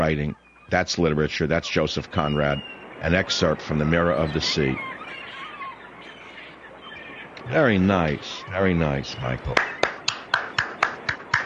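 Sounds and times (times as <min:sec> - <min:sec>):
speech: 0:00.0 - 0:04.9, 0:07.5 - 0:09.7
self-applause: 0:09.5 - 0:11.4
finger snapping: 0:09.6 - 0:11.4.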